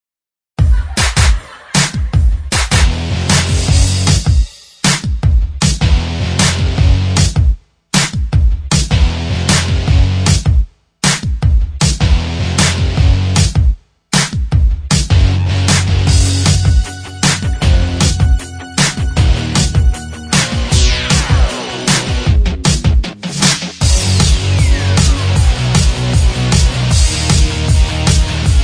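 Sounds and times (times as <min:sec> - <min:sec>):
laughter: 0:00.6 - 0:02.4
TV theme instrumental backing track: 0:00.7 - 0:28.6.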